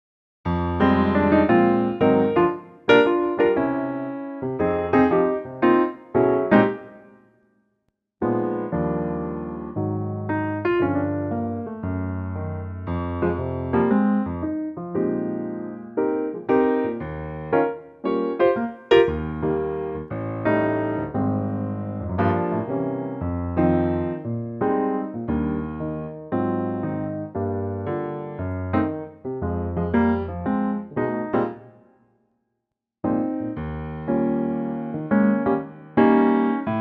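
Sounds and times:
electric piano: 0.5 - 7.2, 8.2 - 31.8, 33.0 - 36.7.

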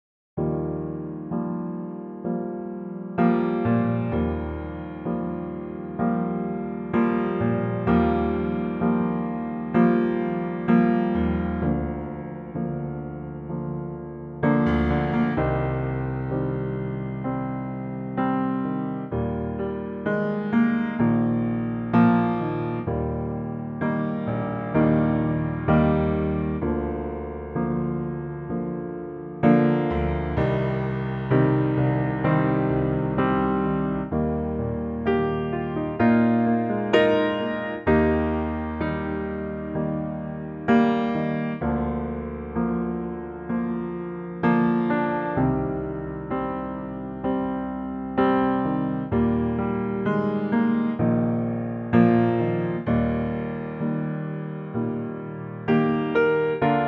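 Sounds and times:
electric piano: 0.4 - 56.8.

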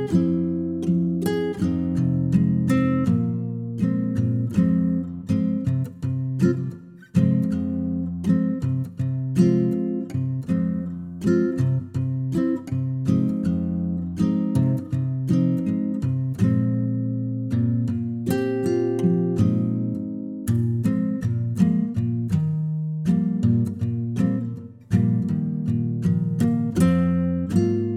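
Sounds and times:
solo acoustic guitar arrangement in E flat: 0.0 - 27.9.

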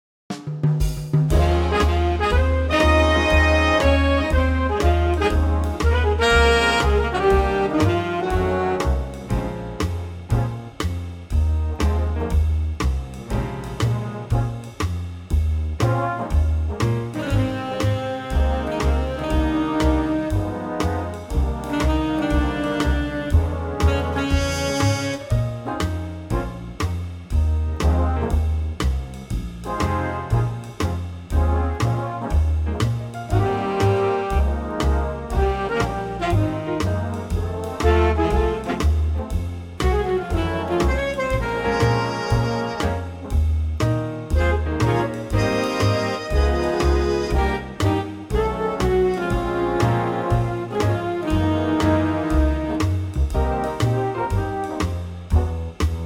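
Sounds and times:
big band playing in A flat: 0.3 - 56.0.

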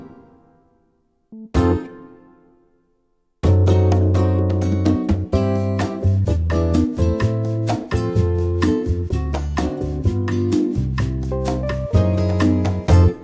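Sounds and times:
bossa nova music: 3.4 - 13.2.

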